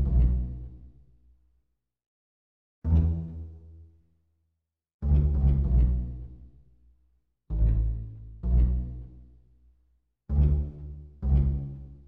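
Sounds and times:
pizzicato strings: 0.0 - 0.9, 2.9 - 3.7, 5.0 - 6.7, 7.5 - 9.4, 10.3 - 12.0.

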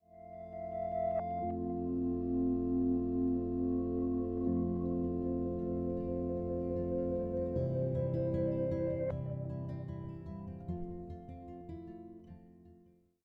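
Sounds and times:
exit outro music: 0.5 - 10.2.

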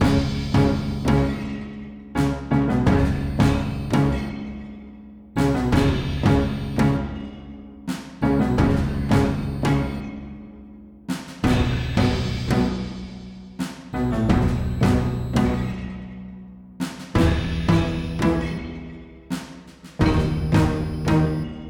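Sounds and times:
town music loop: 0.0 - 1.6, 2.2 - 4.6, 5.4 - 10.4, 11.4 - 16.2, 17.2 - 21.6.

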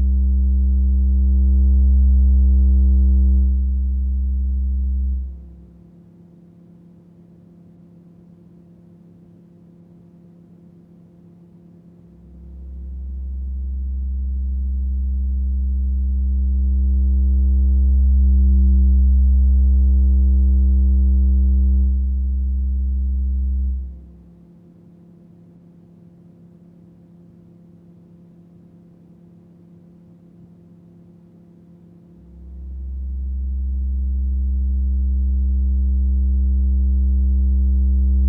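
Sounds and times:
bass: 0.0 - 5.8, 12.1 - 24.4, 32.2 - 38.2.

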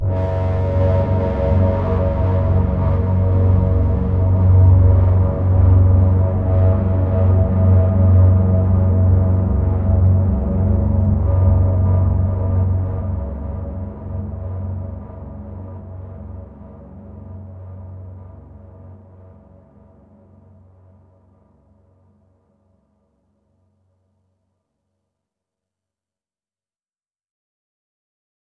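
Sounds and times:
overlay drone: 0.0 - 19.7.

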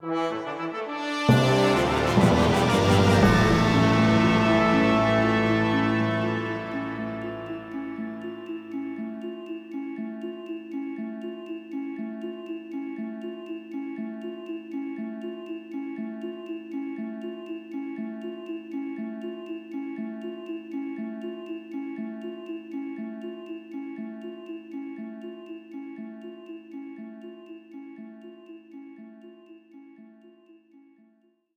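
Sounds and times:
dungeon floor clear jingle: 0.0 - 9.0.

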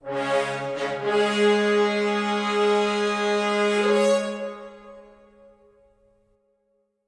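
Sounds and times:
music fanfare: 0.0 - 5.7.

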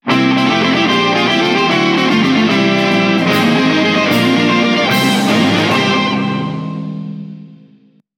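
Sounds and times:
guitar jingle: 0.0 - 7.9.

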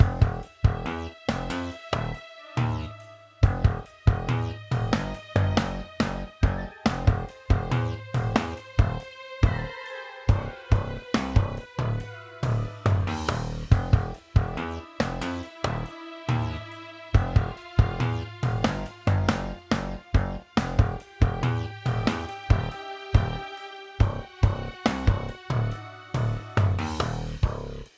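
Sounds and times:
dungeon music: 0.0 - 27.8.

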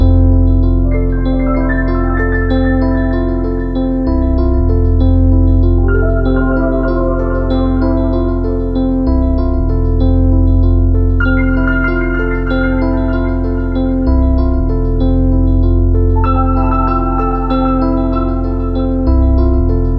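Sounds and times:
ambient music loop: 0.0 - 19.9.

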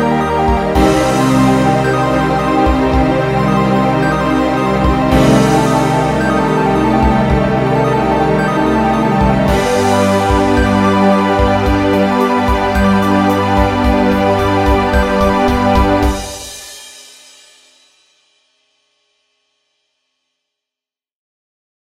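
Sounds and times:
ending music: 0.0 - 16.7.

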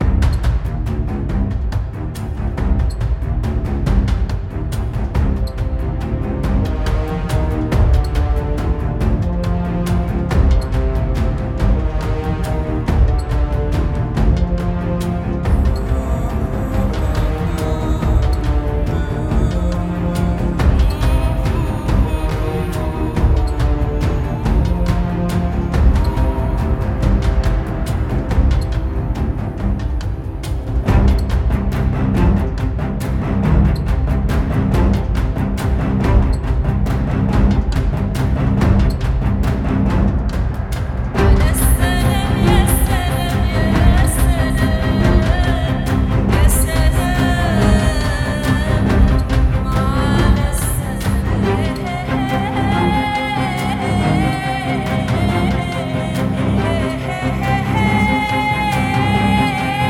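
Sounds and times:
high intensity action music: 0.0 - 59.8.

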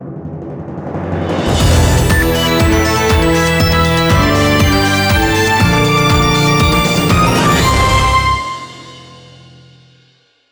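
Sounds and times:
Windows system sound: 1.5 - 9.2.

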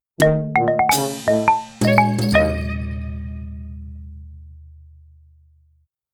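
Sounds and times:
victory jingle: 0.9 - 3.5.

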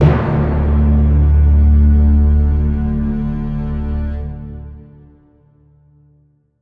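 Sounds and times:
combat end lost music sting: 0.0 - 3.4.

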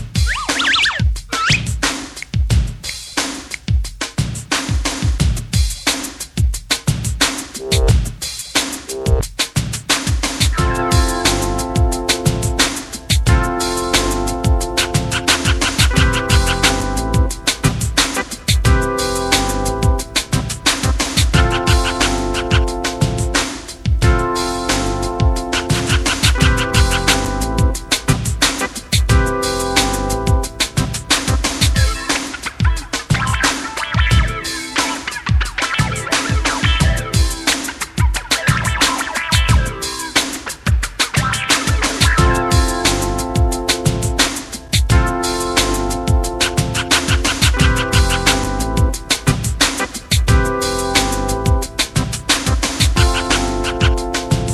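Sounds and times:
instrumental rap beat: 0.2 - 6.8, 7.4 - 8.1, 8.7 - 9.5, 10.2 - 54.5.

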